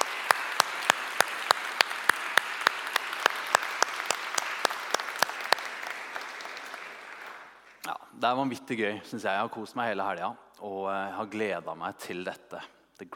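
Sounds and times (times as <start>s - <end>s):
audience applause: 0.0s - 7.8s
speech: 8.2s - 13.1s.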